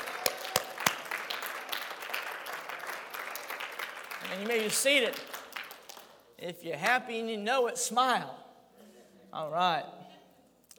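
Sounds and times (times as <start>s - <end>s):
audience clapping: 0.0s - 6.3s
speech: 4.3s - 5.4s, 6.4s - 8.4s, 9.3s - 10.0s.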